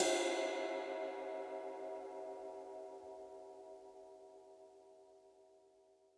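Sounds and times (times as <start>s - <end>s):
ride cymbal: 0.0s - 2.6s.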